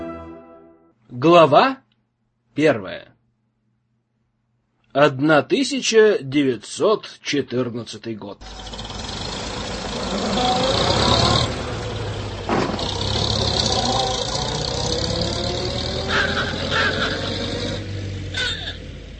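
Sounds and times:
speech: 1.2s - 1.8s, 2.5s - 3.1s, 4.9s - 8.9s, 10.1s - 11.0s
early 1910s Russo-Balt automobile driving and stopping: 8.4s - 19.1s.

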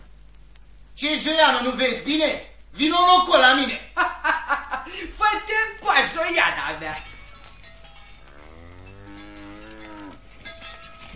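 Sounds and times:
hiss: 0.0s - 11.1s
speech: 1.0s - 7.1s
laughter: 3.9s - 5.2s
cow mooing: 8.3s - 10.3s.

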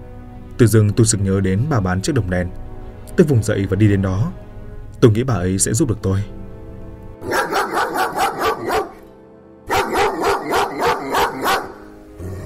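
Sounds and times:
speech: 0.6s - 6.4s
dog barking furiously: 7.2s - 9.0s, 9.7s - 12.0s.

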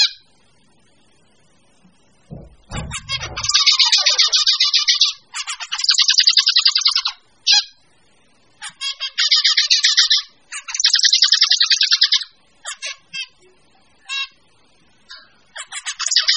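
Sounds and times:
bird chattering and twittering: 2.3s - 7.8s, 8.6s - 13.4s, 15.1s - 16.3s.

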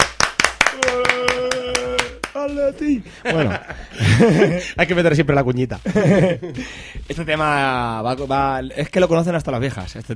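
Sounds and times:
hands clapping as applause: 0.0s - 2.6s
speech: 2.6s - 10.1s
laughter: 3.1s - 4.8s, 5.8s - 6.6s.

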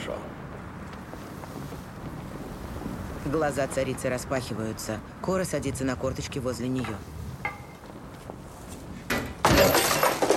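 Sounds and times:
speech: 3.3s - 7.1s
plate smashing: 9.4s - 10.3s.

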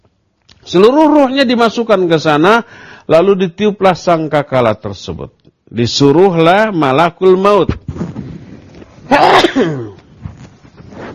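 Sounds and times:
speech: 0.7s - 7.8s, 9.1s - 10.0s
person sneezing: 9.1s - 10.2s.

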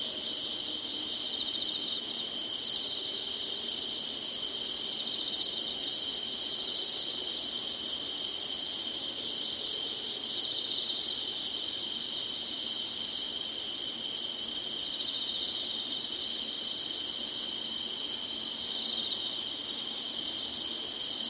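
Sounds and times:
insects high shimmering buzz: 0.0s - 21.2s
faint whistles: 4.1s - 10.1s.

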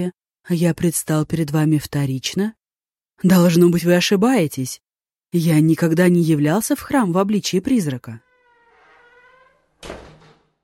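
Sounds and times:
speech: 0.0s - 2.6s, 3.2s - 8.3s, 9.8s - 10.1s
door closing softly: 8.3s - 10.6s.

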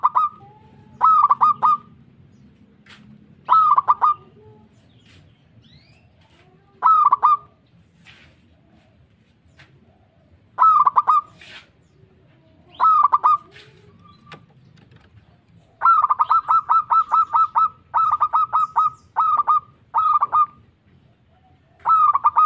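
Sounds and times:
zebra dove cooing: 0.0s - 2.1s, 3.4s - 4.7s, 6.8s - 7.6s, 9.8s - 22.4s.

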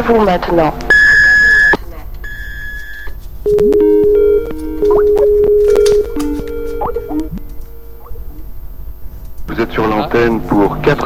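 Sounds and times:
speech: 0.0s - 0.9s, 3.5s - 3.9s, 9.5s - 11.0s
two higher-pitched steady electronic beeps: 0.9s - 8.5s
lower sustained electronic tones shifting slightly in pitch: 3.5s - 8.8s.

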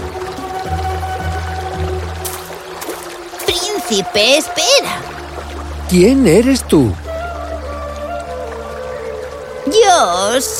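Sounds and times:
water splash of someone diving in: 0.0s - 9.7s
speech: 3.9s - 5.1s, 5.9s - 7.0s, 9.7s - 10.5s.

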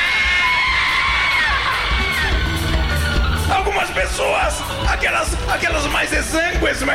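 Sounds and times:
young girls screaming in a crowd: 0.0s - 2.9s
speech: 4.1s - 6.9s.

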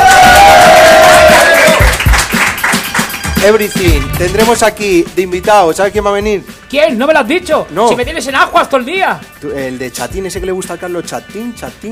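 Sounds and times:
studio audience cheering: 0.0s - 2.8s
whoops and claps: 0.0s - 3.3s
speech: 3.4s - 11.9s.

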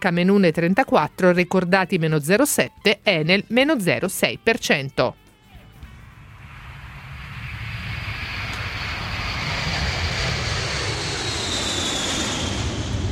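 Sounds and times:
speech: 0.0s - 5.2s
airplane taking off: 5.8s - 13.1s.

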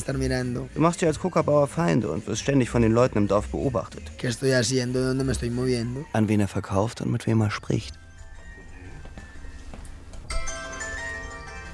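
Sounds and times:
speech: 0.0s - 8.0s
mobile phone ringing: 7.8s - 11.7s.

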